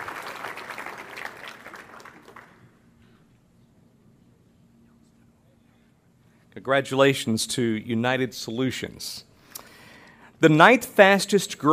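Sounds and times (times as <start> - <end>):
audience applauding: 0.0 - 2.8
speech: 6.6 - 9.3, 10.4 - 11.7.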